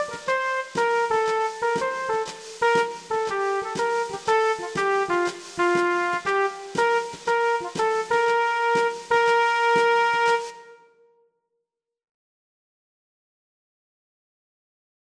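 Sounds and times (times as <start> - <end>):
trumpet playing a Christmas carol playback: 0.0 - 11.1.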